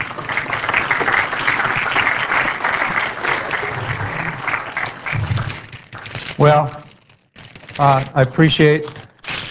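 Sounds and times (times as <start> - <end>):
audience applause: 0.0 - 6.1
speech: 6.4 - 6.8, 7.8 - 9.0.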